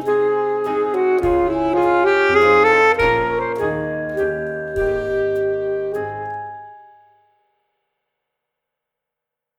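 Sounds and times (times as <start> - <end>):
student saxophone playing a minuet: 0.0 - 6.7.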